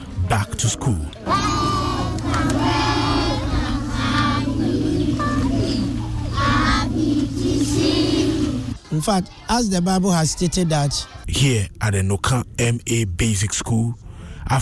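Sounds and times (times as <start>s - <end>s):
speech: 0.3s - 1.7s, 8.9s - 14.6s
pupils at Noka M/A Basic School singing to welcome their teacher: 1.2s - 8.8s.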